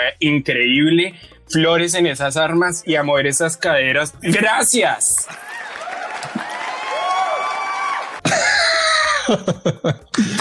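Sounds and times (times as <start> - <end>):
speech: 0.0 - 5.6, 9.3 - 10.3
applause: 5.1 - 8.3
laughter: 8.2 - 10.3.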